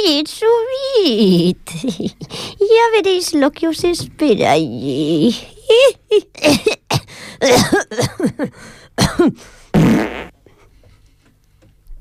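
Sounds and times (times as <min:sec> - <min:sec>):
speech: 0:00.0 - 0:10.3
coughing: 0:05.3 - 0:10.3
fart while coughing: 0:09.8 - 0:10.4.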